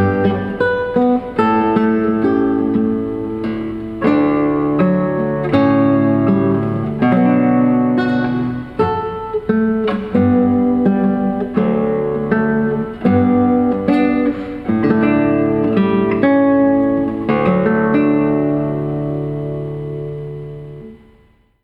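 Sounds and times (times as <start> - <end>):
classical guitar piece: 0.0 - 21.6.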